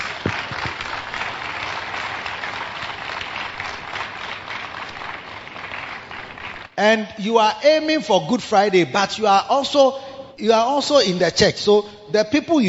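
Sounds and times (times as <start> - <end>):
audience clapping: 0.0 - 6.8
speech: 6.8 - 12.6.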